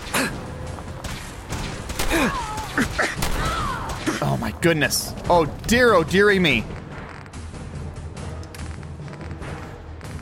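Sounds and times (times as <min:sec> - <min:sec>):
gunfire in the video game Fallout 4: 0:00.9 - 0:04.4
speech: 0:02.2 - 0:03.0, 0:04.6 - 0:06.8.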